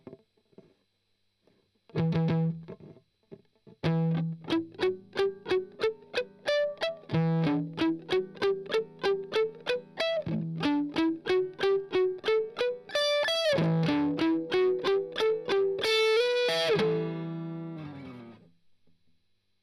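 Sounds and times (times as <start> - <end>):
strummed octave arpeggio: 3.8 - 18.4.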